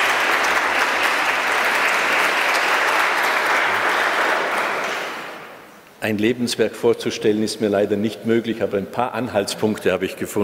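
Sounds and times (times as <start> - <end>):
audience applause in a church: 0.0 - 5.6
speech: 6.0 - 10.4.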